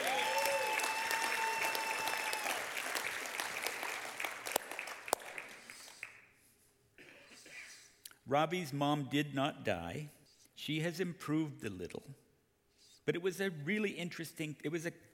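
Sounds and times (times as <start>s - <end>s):
audience applause: 0.0s - 6.2s
speech: 8.3s - 12.2s, 13.0s - 15.1s.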